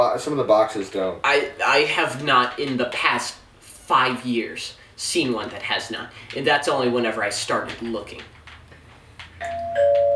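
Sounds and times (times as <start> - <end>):
speech: 0.2 - 8.4
electronic doorbell chiming: 9.4 - 10.1.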